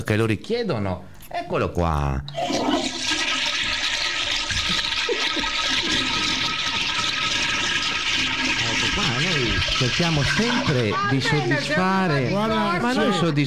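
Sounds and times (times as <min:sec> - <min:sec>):
speech: 0:00.0 - 0:03.0, 0:09.0 - 0:13.4
toilet flushing: 0:02.3 - 0:12.8.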